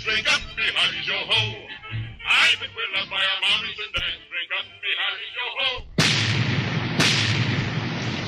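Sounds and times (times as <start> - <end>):
speech: 0.2 - 1.7, 2.3 - 5.9
cannon firing: 6.0 - 8.2.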